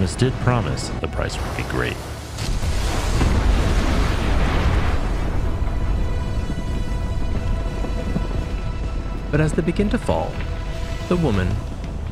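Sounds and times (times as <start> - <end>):
speech: 0.0 - 2.5, 9.3 - 10.5, 11.1 - 12.0
thundering roar of a mountain collapsing: 2.4 - 9.3.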